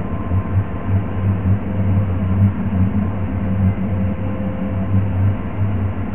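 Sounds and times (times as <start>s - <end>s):
deep steady hum: 0.0s - 6.1s
low throbbing rumble: 0.0s - 6.1s.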